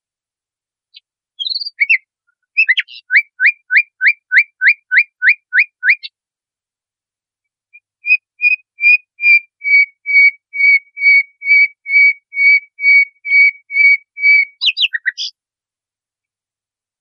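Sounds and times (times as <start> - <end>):
nightingale song: 0.9 - 6.2, 7.7 - 15.4.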